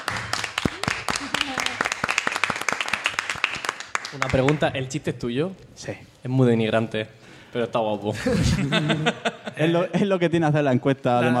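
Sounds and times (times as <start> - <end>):
applause: 0.0 - 4.6
speech: 4.1 - 11.3
laughter: 8.2 - 10.1.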